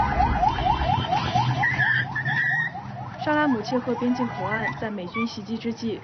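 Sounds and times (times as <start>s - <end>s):
car alarms going off: 0.0s - 6.0s
speech: 3.2s - 6.0s.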